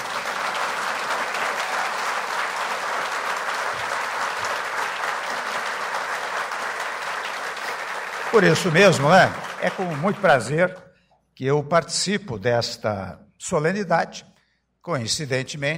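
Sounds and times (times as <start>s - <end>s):
audience applause: 0.0s - 10.8s
speech: 8.4s - 15.7s.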